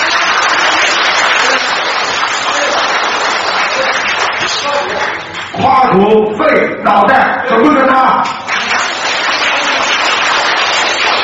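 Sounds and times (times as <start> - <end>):
audience applause: 0.0 - 5.6, 8.4 - 11.2
speech: 5.9 - 8.4.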